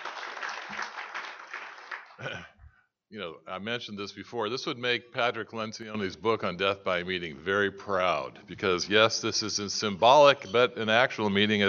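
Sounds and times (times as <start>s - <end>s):
applause at the 2019 NAATP membership meeting: 0.0s - 2.4s
speech: 2.2s - 11.6s.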